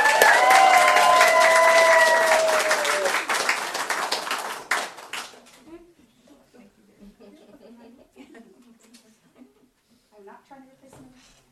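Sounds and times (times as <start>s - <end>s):
audience applause: 0.0s - 5.5s.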